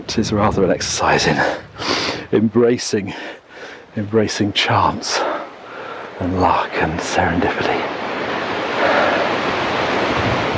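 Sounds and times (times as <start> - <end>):
wind blowing into the microphone outdoors: 0.0 - 3.1, 6.9 - 10.5
speech: 0.1 - 3.4, 4.0 - 5.3, 6.2 - 8.0.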